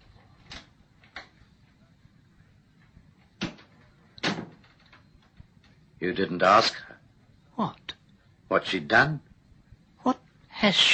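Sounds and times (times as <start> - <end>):
door opening with knocks and clacks: 3.4 - 5.4
speech: 6.0 - 6.9, 7.6 - 7.8, 8.5 - 9.3, 10.0 - 10.9.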